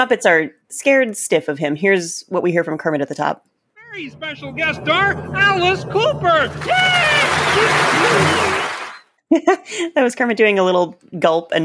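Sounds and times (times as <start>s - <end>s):
speech: 0.0s - 8.6s, 9.3s - 11.6s
audience applause: 4.1s - 9.0s.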